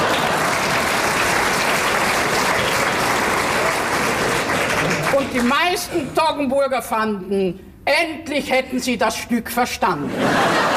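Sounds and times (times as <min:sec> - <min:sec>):
thunderous applause from a large audience: 0:00.0 - 0:05.5
speech: 0:05.4 - 0:10.7
laughter: 0:10.0 - 0:10.7.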